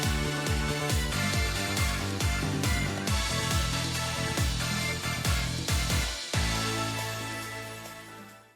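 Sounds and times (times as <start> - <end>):
skipping heartbeat: 0.0 - 6.8.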